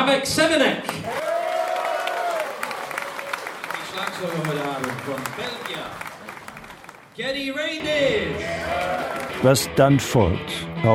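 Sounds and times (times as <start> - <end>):
speech: 0.1 - 1.3, 4.0 - 6.1, 7.2 - 10.9
concert audience applauding: 0.9 - 9.7
crowd whooping: 1.1 - 7.0, 7.8 - 9.6.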